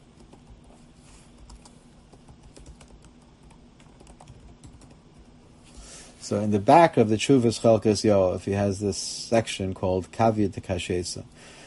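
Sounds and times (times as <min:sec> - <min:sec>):
typing on a computer keyboard into a chat: 0:00.2 - 0:00.7, 0:01.4 - 0:05.3
speech: 0:06.3 - 0:11.6.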